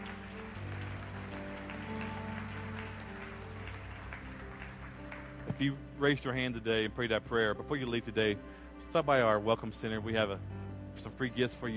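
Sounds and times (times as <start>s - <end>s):
audience applause: 0.0s - 5.8s
speech: 5.5s - 11.7s.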